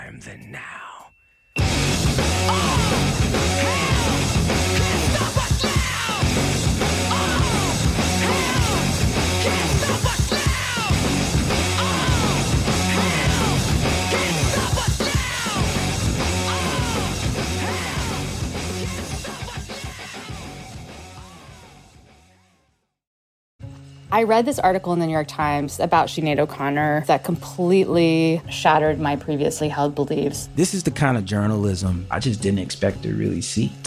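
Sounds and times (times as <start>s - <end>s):
speech: 0.2s - 0.8s, 24.2s - 33.8s
rock song with heavy distorted guitars and shouted vocals: 1.6s - 22.3s.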